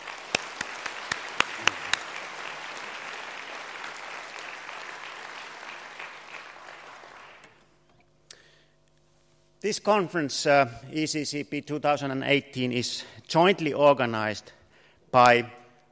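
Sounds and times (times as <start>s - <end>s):
audience applause: 0.0s - 7.6s
speech: 9.6s - 15.6s.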